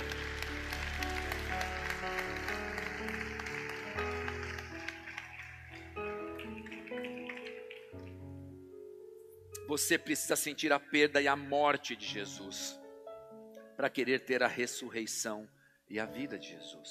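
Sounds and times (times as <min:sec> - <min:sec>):
audience applause: 0:00.0 - 0:08.2
speech: 0:09.7 - 0:12.8, 0:13.8 - 0:16.8.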